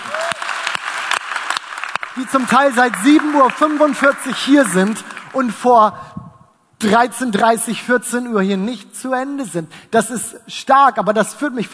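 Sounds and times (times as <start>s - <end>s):
audience applause: 0.0s - 5.4s
speech: 2.2s - 6.2s, 6.8s - 11.7s.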